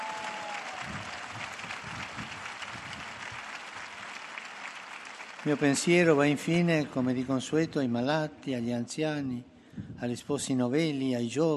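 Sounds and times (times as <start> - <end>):
crowd applause: 0.0 - 7.3
speech: 5.4 - 11.5.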